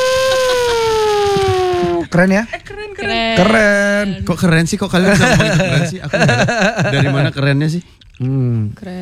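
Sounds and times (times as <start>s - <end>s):
laughter: 0.1s - 2.3s, 5.0s - 7.4s
speech: 2.1s - 8.9s
voice imitating a car: 3.1s - 4.0s.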